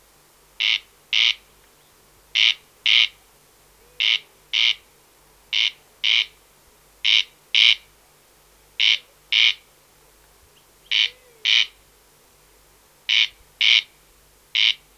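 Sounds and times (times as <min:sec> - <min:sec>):
Corn crake Crex crex singing rasping double notes: 0:00.6 - 0:01.4, 0:02.4 - 0:03.2, 0:03.8 - 0:04.9, 0:05.5 - 0:06.4, 0:07.0 - 0:07.9, 0:08.8 - 0:09.7, 0:10.6 - 0:11.8, 0:13.1 - 0:14.9.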